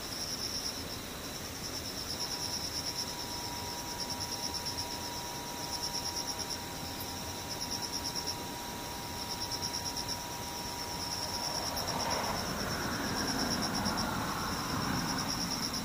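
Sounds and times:
cicadas and insects buzzing: 0:00.0 - 0:15.8
faint thin whine: 0:00.0 - 0:15.8
vehicle-like rushing swell: 0:11.0 - 0:15.8.

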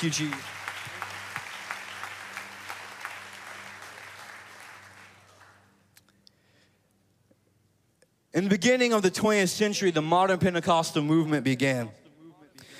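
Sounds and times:
speech: 0:00.0 - 0:00.6, 0:08.4 - 0:12.0
hand clapping: 0:00.0 - 0:06.1.

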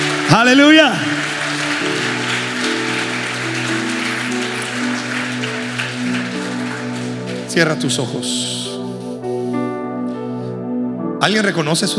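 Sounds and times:
audience applause: 0:00.0 - 0:08.2
sustained organ or keyboard chords: 0:00.0 - 0:11.7
speech: 0:00.3 - 0:01.1, 0:07.5 - 0:08.6, 0:11.2 - 0:11.9.

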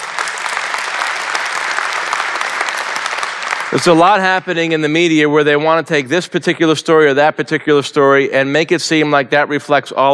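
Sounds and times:
crowd applause: 0:00.0 - 0:04.8
speech: 0:03.8 - 0:10.1.

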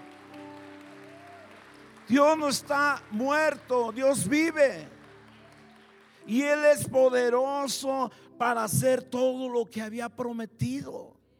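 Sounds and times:
audience applause: 0:00.0 - 0:07.0
speech: 0:02.1 - 0:05.0, 0:06.3 - 0:11.1.

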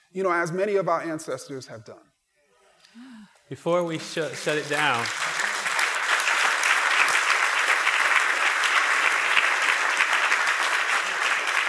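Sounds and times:
speech: 0:00.1 - 0:02.1, 0:02.9 - 0:05.3
audience applause: 0:03.9 - 0:11.6.

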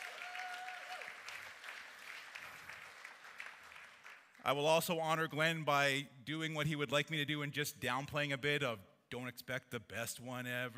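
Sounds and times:
audience applause: 0:00.0 - 0:04.4
speech: 0:04.4 - 0:10.7.

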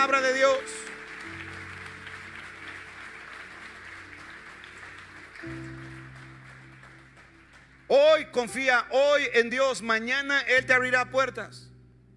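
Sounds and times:
speech: 0:00.0 - 0:01.4, 0:07.9 - 0:11.7
audience applauding: 0:00.0 - 0:08.4.

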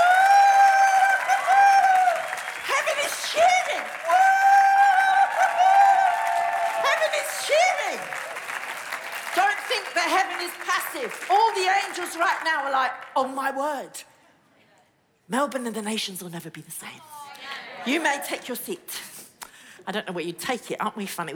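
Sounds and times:
audience cheering: 0:00.0 - 0:12.6
speech: 0:10.5 - 0:14.1, 0:15.3 - 0:17.1, 0:17.8 - 0:19.1, 0:19.9 - 0:21.3.

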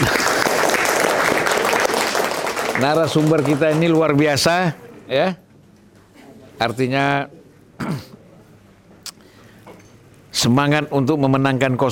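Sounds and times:
crowd applauding: 0:00.0 - 0:04.7
speech: 0:02.8 - 0:05.4, 0:06.6 - 0:08.1, 0:10.4 - 0:11.8.

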